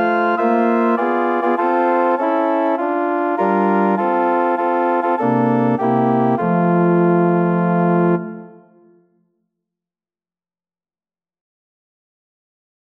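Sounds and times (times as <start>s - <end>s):
organ music: 0.0s - 9.0s.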